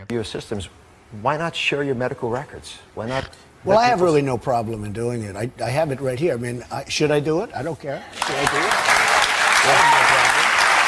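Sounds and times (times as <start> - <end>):
speech: 0.0 - 8.9, 9.6 - 10.1
studio audience applause: 8.1 - 10.8.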